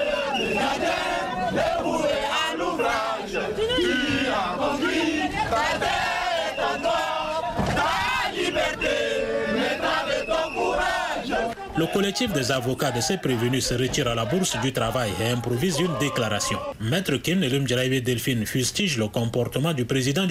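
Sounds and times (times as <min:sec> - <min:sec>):
crowd outside a courthouse singing the national anthem: 0:00.0 - 0:16.8
speech: 0:11.8 - 0:20.2.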